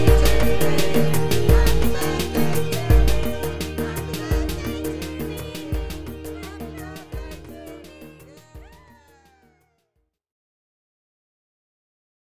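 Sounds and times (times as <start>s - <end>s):
birthday song karaoke backing track: 0.0s - 9.4s.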